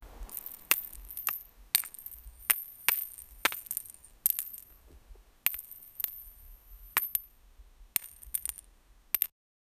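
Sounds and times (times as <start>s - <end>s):
stones and rocks: 0.0s - 9.3s.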